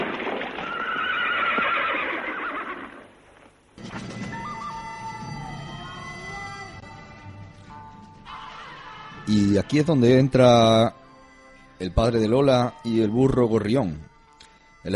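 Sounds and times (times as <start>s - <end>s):
horse neighing: 0.6s - 3.1s
speech: 9.3s - 11.0s, 11.8s - 14.1s.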